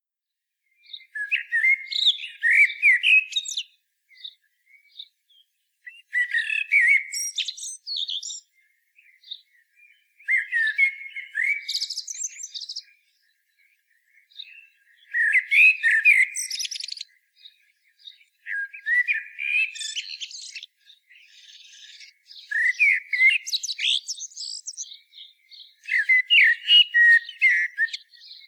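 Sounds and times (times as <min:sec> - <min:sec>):
common blackbird song: 0:00.4 - 0:28.4.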